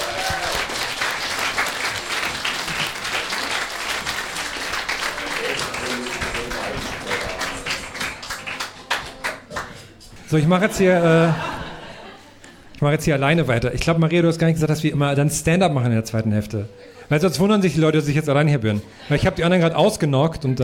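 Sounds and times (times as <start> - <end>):
audience applause: 0.0 - 9.8
speech: 10.3 - 11.5, 12.8 - 20.6
laughter: 10.5 - 12.7.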